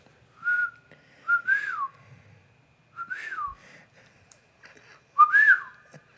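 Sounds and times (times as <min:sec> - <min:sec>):
person whistling imitating bird calls: 0:00.4 - 0:01.9, 0:03.0 - 0:03.6, 0:05.2 - 0:05.8.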